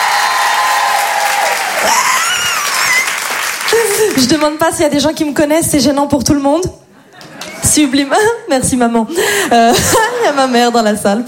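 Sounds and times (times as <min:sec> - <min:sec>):
audience applauding and cheering: 0:00.0 - 0:04.4
speech: 0:04.2 - 0:06.8, 0:07.7 - 0:11.2.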